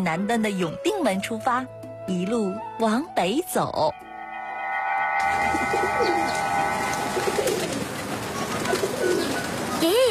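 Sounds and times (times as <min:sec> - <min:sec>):
speech: 0:00.0 - 0:04.1, 0:05.2 - 0:07.4
large flock of pigeons flying overhead: 0:05.7 - 0:10.0.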